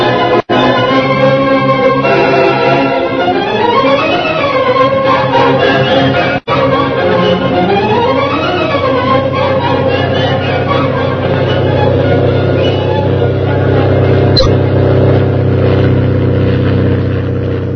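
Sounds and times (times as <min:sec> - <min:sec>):
fast plane roaring overhead: 0:00.0 - 0:17.7.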